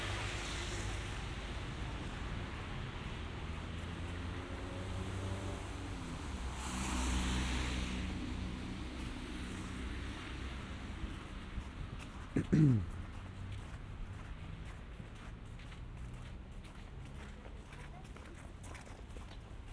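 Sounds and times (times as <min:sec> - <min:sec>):
passing vehicle: 0:00.0 - 0:18.6
traffic rumble in winter Montreal: 0:00.0 - 0:19.7.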